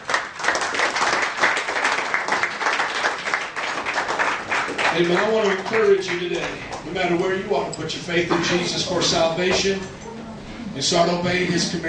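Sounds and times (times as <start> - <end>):
audience hand clapping: 0.0 - 6.9
speech: 5.0 - 10.0, 10.8 - 11.8.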